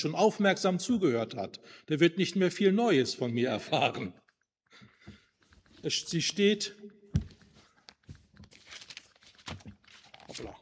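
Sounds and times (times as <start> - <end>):
speech: 0.0 - 4.2, 5.8 - 6.9
pages of a Bible leafed through during a church reading: 7.3 - 10.6.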